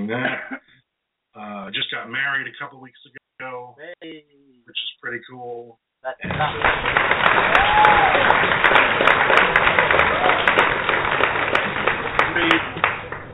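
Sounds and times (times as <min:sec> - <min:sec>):
speech: 0:00.1 - 0:00.7, 0:01.4 - 0:10.2, 0:12.4 - 0:12.8
applause from people lined up behind the speaker: 0:06.2 - 0:13.3.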